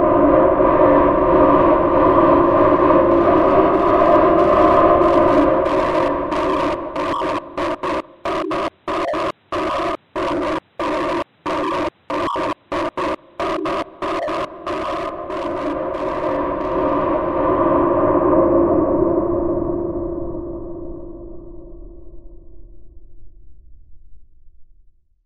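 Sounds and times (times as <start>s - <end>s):
strange sound: 0.2s - 20.0s.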